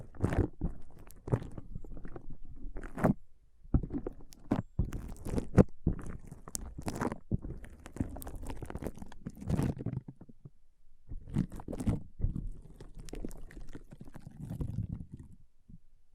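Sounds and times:
foam being squeezed and rubbed: 0:00.0 - 0:03.2, 0:03.8 - 0:09.8, 0:11.1 - 0:15.3.

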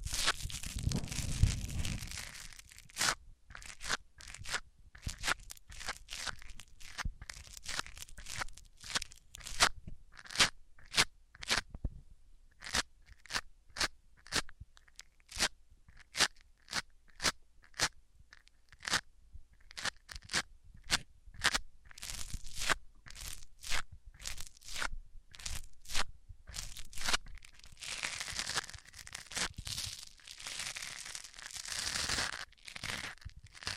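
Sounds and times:
crunching scratches: 0:00.0 - 0:11.7, 0:12.6 - 0:19.0, 0:19.6 - 0:33.7
microphones rubbed against different surfaces: 0:00.5 - 0:02.4.

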